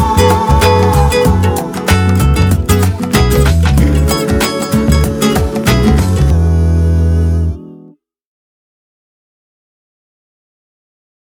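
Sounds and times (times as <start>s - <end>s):
groove music: 0.0s - 7.9s.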